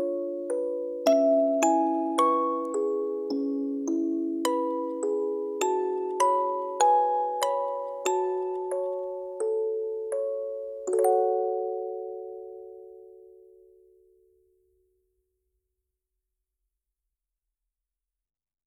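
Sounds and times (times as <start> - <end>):
video game music box melody: 0.0 - 13.6.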